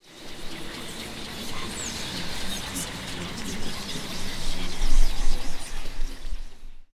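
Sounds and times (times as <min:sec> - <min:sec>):
chatter: 0:00.4 - 0:05.9.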